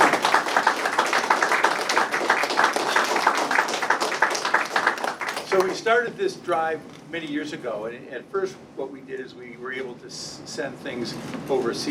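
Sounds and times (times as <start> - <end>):
crowd applause: 0.0 - 5.8
speech: 5.8 - 11.8.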